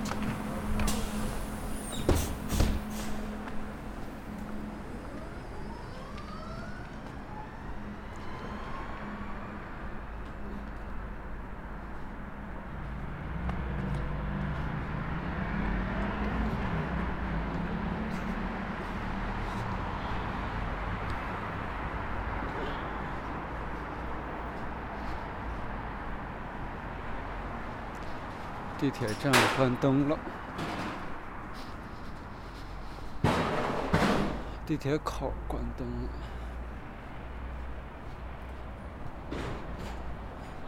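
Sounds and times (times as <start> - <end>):
city bus engine rumble at night: 0.0 - 8.0, 9.9 - 40.6
road noise: 0.0 - 40.6
speech: 28.8 - 30.4, 34.7 - 36.4.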